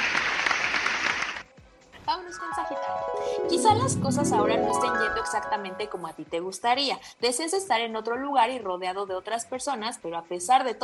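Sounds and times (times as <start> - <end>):
applause: 0.0 - 1.5
speech: 2.1 - 10.8.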